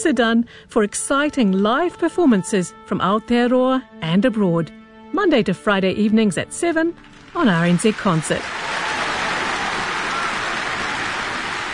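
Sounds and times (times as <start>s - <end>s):
speech: 0.0s - 8.8s
applause: 7.0s - 11.7s.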